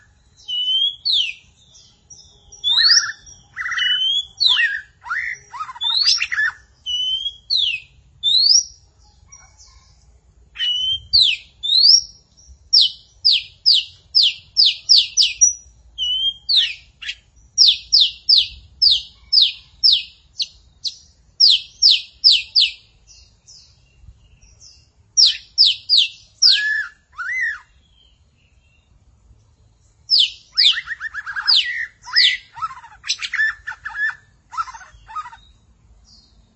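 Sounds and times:
magpie-robins and shamas singing: 0.0 - 9.7, 12.8 - 29.0, 29.9 - 36.4.

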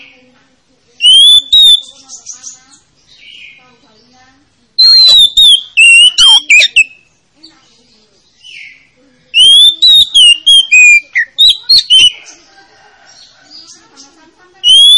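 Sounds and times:
Oriental magpie-robin song of bright whistled phrases: 1.0 - 3.6, 4.8 - 7.1, 8.4 - 12.4, 13.1 - 14.9.

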